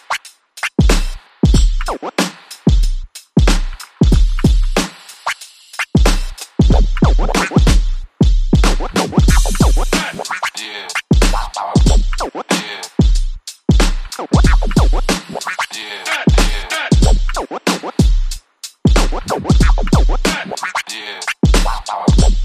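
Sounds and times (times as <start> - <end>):
drums: 0.0 - 22.4
vocal chops: 9.0 - 13.0, 14.2 - 18.0, 19.0 - 22.4.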